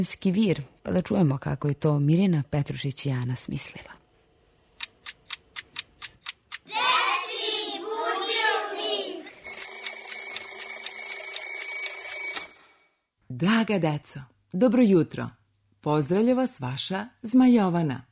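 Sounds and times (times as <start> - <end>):
speech: 0.0 - 4.0, 13.4 - 18.0
toy-like alarm clock ticking: 4.8 - 6.7, 9.4 - 12.5
bright childlike sung or spoken passage: 6.7 - 9.4
toy-like alarm clock ringing: 9.4 - 12.9.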